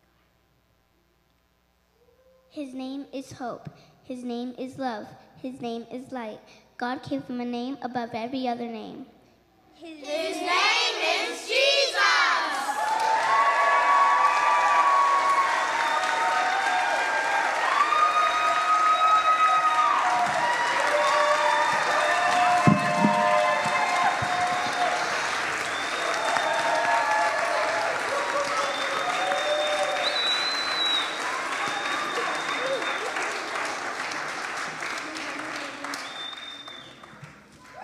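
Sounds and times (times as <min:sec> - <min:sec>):
speech: 0:02.6 - 0:09.2, 0:09.8 - 0:10.7
crowd cheers and whoops: 0:10.1 - 0:37.8
audience applause: 0:12.7 - 0:37.8.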